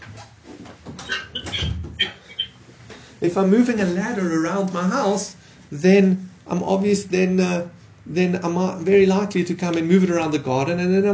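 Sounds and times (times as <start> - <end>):
door being closed: 0.9 - 2.2
speech: 3.2 - 11.1.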